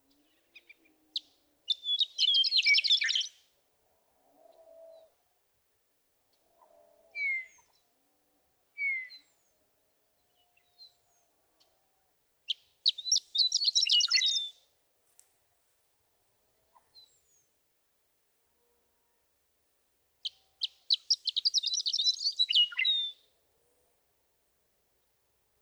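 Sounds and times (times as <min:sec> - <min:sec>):
Western Meadowlark singing: 0:00.6 - 0:03.4, 0:12.5 - 0:14.6, 0:20.2 - 0:23.2.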